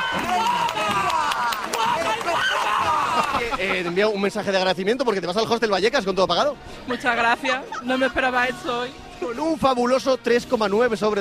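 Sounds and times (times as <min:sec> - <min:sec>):
loud applause from audience: 0:00.0 - 0:03.6
laughter: 0:00.5 - 0:04.5, 0:06.9 - 0:08.3
speech: 0:03.6 - 0:11.2.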